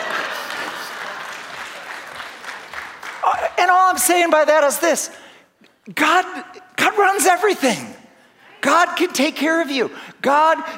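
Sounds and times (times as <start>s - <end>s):
round of applause: 0.0s - 3.9s
speech: 3.6s - 5.2s, 5.9s - 7.9s, 8.6s - 10.7s.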